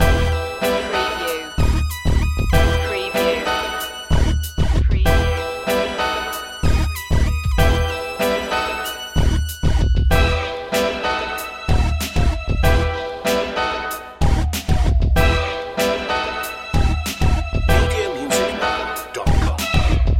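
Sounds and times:
hip hop loop: 0.0s - 20.1s.

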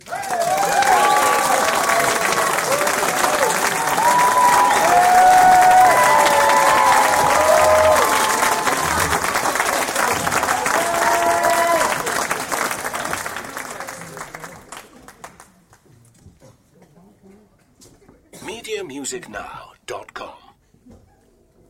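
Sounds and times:
audience applause: 0.0s - 15.5s.

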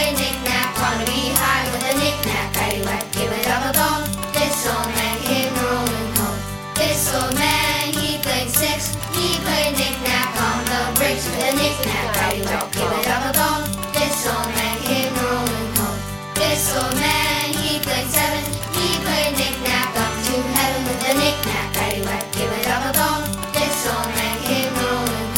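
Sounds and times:
children singing a nursery rhyme in a group: 0.0s - 6.2s, 6.8s - 15.8s, 16.4s - 25.3s.

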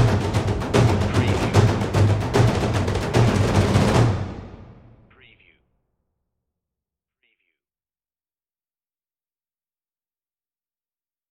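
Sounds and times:
epic taiko drums: 0.0s - 5.0s.

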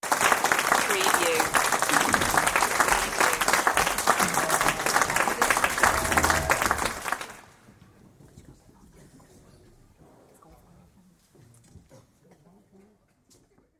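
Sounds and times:
audience applause: 0.0s - 7.6s.

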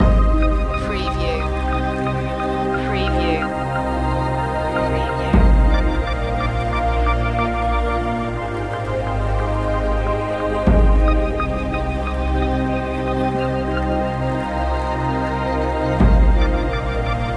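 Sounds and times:
fantasy music loop: 0.0s - 17.3s.

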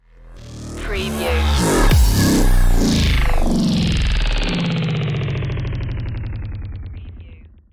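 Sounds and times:
bass tricks stinger: 0.0s - 7.7s.

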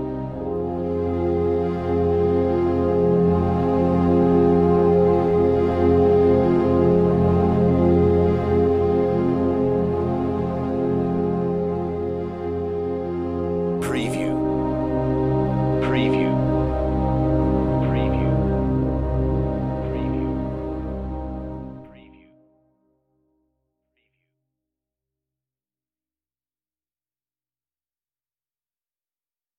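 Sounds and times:
strings: 0.0s - 22.1s.

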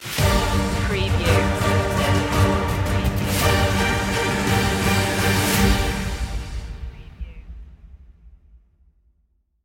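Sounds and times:
battle music: 0.0s - 7.3s.

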